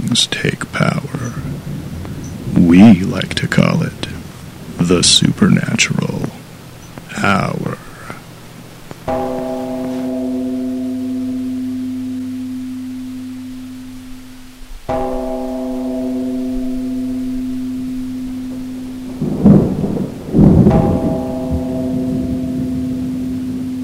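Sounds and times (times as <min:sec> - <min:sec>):
speech: 0:00.2 - 0:01.7, 0:02.6 - 0:04.0, 0:04.8 - 0:06.2, 0:07.2 - 0:07.7
bell tolling: 0:09.1 - 0:14.3, 0:14.9 - 0:23.8.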